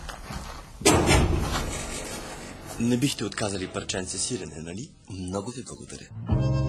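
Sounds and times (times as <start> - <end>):
gate scraping and rattling while being opened: 0.8 - 4.0
speech: 2.8 - 6.6.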